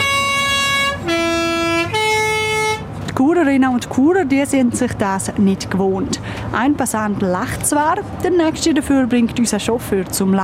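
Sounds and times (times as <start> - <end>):
loud vehicle horn blaring a three-note melody in the city: 0.0 - 2.9
rumble of city traffic: 0.0 - 10.4
speech: 3.4 - 10.4.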